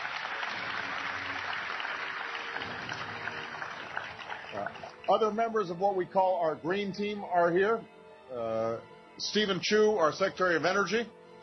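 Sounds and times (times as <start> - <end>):
audience applause: 0.0 - 5.3
speech: 4.5 - 11.2.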